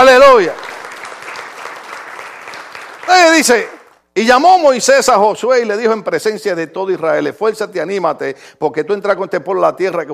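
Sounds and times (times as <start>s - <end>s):
crowd clapping: 0.0s - 4.1s
speech: 0.2s - 0.8s, 3.1s - 10.1s.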